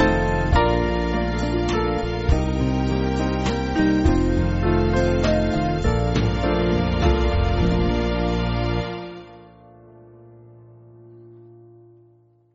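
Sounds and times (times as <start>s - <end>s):
band backing track for churches: 0.0s - 9.5s.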